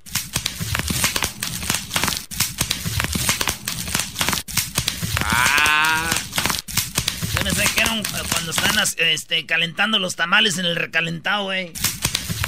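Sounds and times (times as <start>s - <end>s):
plastic bubble wrap popping: 0.0s - 8.9s, 11.8s - 12.4s
speech: 7.9s - 12.0s.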